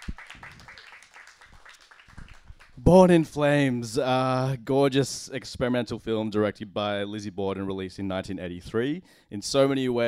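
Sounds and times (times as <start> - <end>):
audience applause: 0.0 - 2.8
speech: 2.8 - 10.0.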